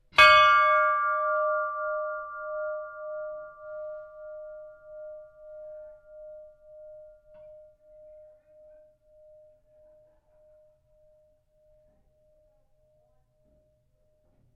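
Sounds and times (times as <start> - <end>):
iron ship's bell ringing: 0.2 - 9.7.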